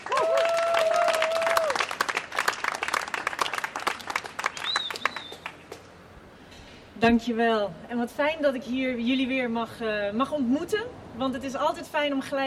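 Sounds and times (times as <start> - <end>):
audience applause: 0.0 - 5.8
speech: 7.0 - 12.4.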